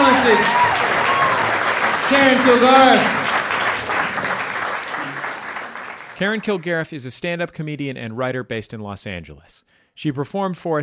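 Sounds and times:
crowd applauding: 0.0 - 6.9
speech: 0.2 - 1.0, 2.1 - 3.2, 6.2 - 10.8.

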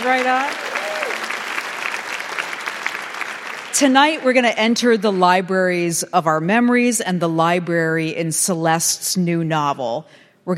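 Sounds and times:
speech: 0.0 - 0.7, 3.8 - 10.5
audience applause: 0.0 - 4.2.

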